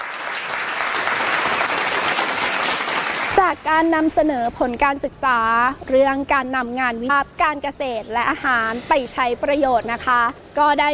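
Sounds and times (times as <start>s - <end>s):
audience applause for speakers: 0.0s - 3.6s
speech: 3.4s - 10.9s.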